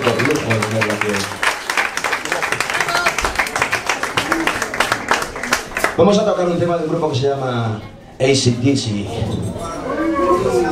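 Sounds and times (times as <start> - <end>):
crowd applause: 0.0 - 6.0
speech: 0.1 - 1.4, 6.0 - 9.8.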